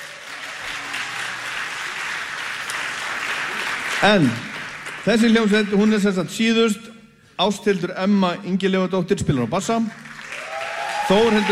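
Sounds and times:
audience applause: 0.0s - 6.1s, 9.9s - 11.5s
speech: 4.0s - 10.1s, 11.1s - 11.5s.

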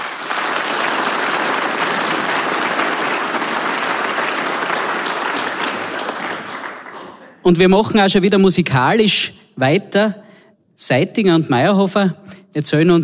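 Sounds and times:
crowd applause: 0.0s - 7.4s
speech: 7.4s - 10.2s, 10.8s - 13.0s.

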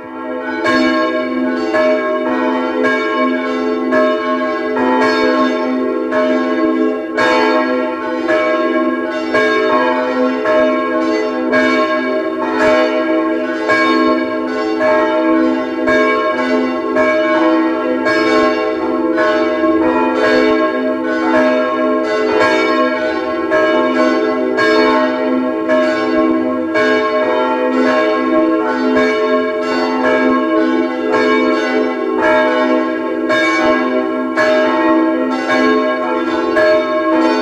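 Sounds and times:
Baroque-era parish church bells ringing at noon in Vienna's 16th district: 0.0s - 37.4s.

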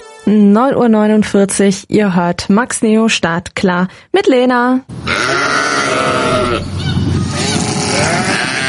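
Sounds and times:
speech: 0.3s - 6.8s
flock of sheep bleating: 5.1s - 8.6s.

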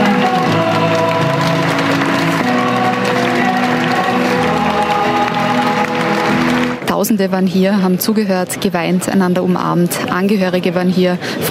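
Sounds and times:
sustained musical tones: 0.0s - 6.9s
audience applause: 0.0s - 7.0s
speech: 7.1s - 11.4s.

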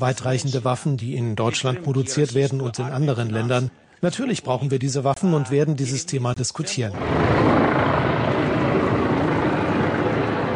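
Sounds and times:
speech: 0.0s - 7.9s
helicopters circling overhead: 7.0s - 10.5s.

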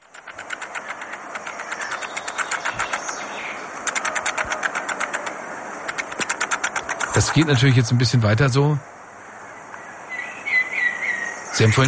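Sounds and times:
jumping spider vibration signals: 0.0s - 7.4s
speech: 7.1s - 8.9s, 11.6s - 11.8s.

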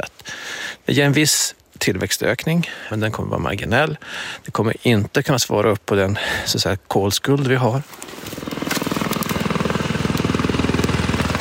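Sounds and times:
speech: 0.9s - 8.4s
helicopter with fertilizer spreader flying overhead: 8.1s - 11.3s.

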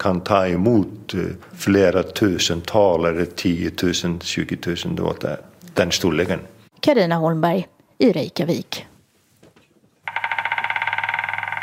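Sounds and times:
speech: 0.0s - 8.9s
white-backed woodpecker trilling: 10.1s - 11.6s.

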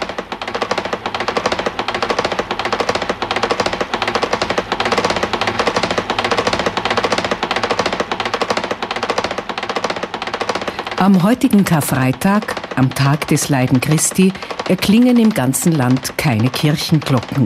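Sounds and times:
wooden Good Friday ratchets rattling in Seckau: 0.0s - 17.4s
speech: 11.0s - 17.4s.

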